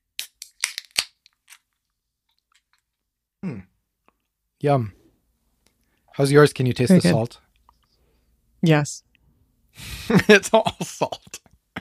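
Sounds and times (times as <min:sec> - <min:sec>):
cans of beer being cracked open: 0:00.2 - 0:01.8
speech: 0:03.4 - 0:03.7, 0:04.6 - 0:05.0, 0:06.2 - 0:07.4, 0:08.6 - 0:09.1, 0:09.8 - 0:11.4.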